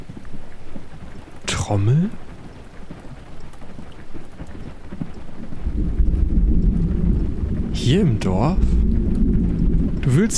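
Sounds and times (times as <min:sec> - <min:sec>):
light rain pattering: 0:00.0 - 0:10.3
speech: 0:01.7 - 0:02.2, 0:07.9 - 0:08.7, 0:10.0 - 0:10.3
thunder rumbling: 0:05.5 - 0:10.3.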